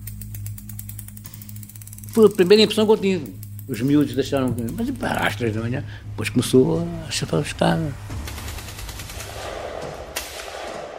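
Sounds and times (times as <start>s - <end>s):
speech: 2.1s - 8.3s
gunshots: 8.2s - 10.9s.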